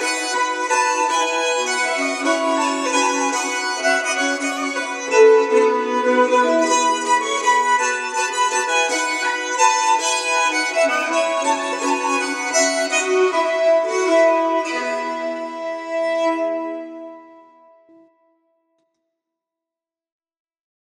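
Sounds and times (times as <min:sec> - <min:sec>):
bagpipe and fiddle playing a Norwegian bridal waltz: 0:00.0 - 0:17.4.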